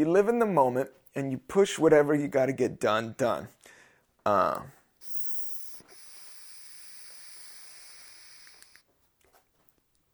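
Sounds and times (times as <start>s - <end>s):
speech: 0.0s - 4.8s
Afternoon Delight cannabis vaporizer hissing: 5.0s - 8.9s.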